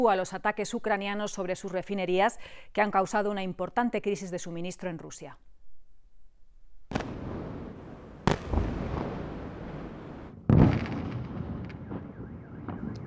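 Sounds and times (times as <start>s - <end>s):
speech: 0.0s - 5.5s
explosions during missile and drone bombardment of Kiev: 6.9s - 13.0s.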